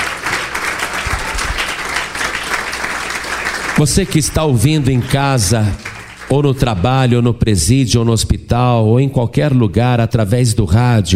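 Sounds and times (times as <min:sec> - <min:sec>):
audience applause: 0:00.0 - 0:06.6
speech: 0:03.8 - 0:11.1.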